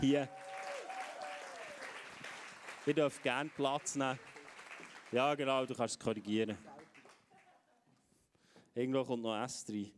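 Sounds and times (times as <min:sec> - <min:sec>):
speech: 0:00.0 - 0:00.6, 0:02.8 - 0:04.3, 0:05.1 - 0:06.8, 0:08.8 - 0:09.9
audience applause: 0:00.0 - 0:07.5.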